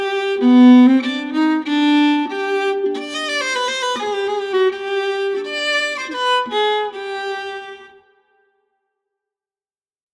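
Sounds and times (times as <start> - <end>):
viola: 0.2 - 7.9.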